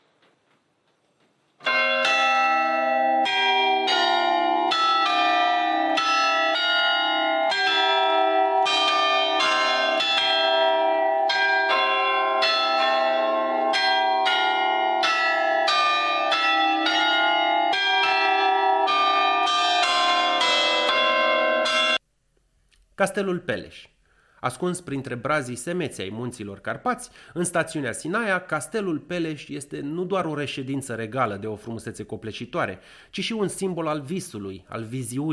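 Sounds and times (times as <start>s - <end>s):
palace tower clock chiming: 1.6s - 22.0s
speech: 23.0s - 35.3s.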